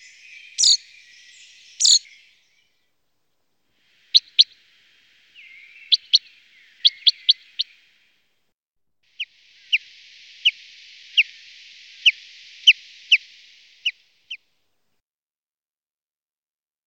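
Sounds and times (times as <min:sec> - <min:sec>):
common chaffinch song: 0:00.0 - 0:08.4, 0:09.0 - 0:15.0
faint hiss: 0:00.0 - 0:15.0.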